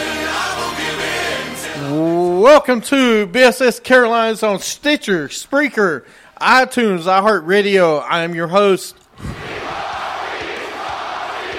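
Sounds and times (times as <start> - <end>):
crowd chanting a name and roaring: 0.0 - 2.4, 9.2 - 11.5
speech: 2.4 - 9.3.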